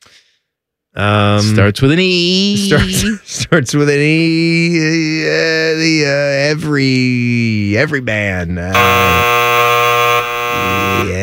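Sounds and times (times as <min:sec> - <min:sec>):
speech: 0:01.0 - 0:09.6
game show buzzer: 0:08.8 - 0:11.2.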